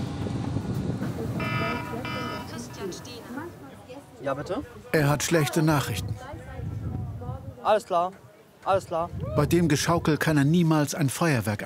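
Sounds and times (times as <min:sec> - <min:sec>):
faint murmuring voices: 0:00.9 - 0:10.9
telephone ringing: 0:01.4 - 0:02.8
speech: 0:04.2 - 0:06.4, 0:07.6 - 0:11.6.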